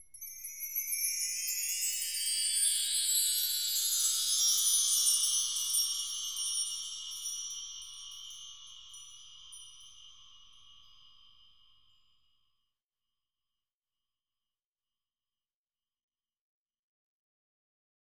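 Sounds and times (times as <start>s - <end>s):
bells: 0.0s - 12.1s.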